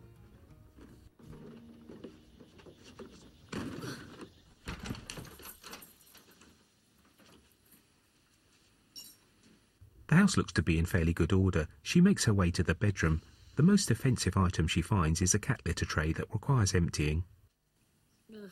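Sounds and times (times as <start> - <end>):
front door of a remote country house being opened: 4.7 - 6.6
speech: 10.2 - 17.3.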